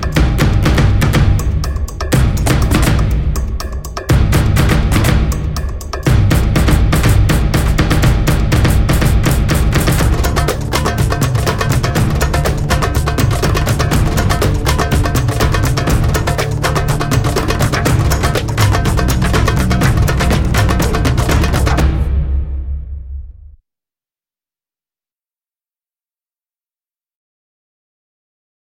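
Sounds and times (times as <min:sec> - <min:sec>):
instrumental music: 0:00.0 - 0:22.8.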